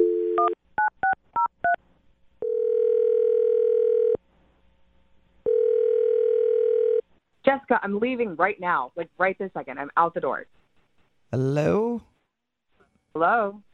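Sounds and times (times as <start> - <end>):
long steady phone tones: 0.0 - 0.6, 2.4 - 4.2, 5.5 - 7.0
phone dial tone: 2.4 - 4.2, 5.5 - 7.0
speech: 7.7 - 10.6, 11.3 - 12.1, 13.2 - 13.7.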